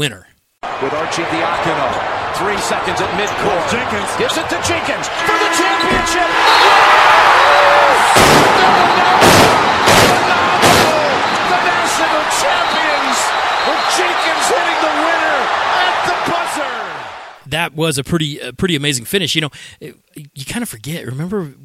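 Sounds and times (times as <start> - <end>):
speech: 0.0 - 9.9, 11.6 - 16.7, 17.5 - 21.6
crowd roaring in an arena: 0.6 - 17.4
fireworks launched inside an arena: 8.1 - 11.3.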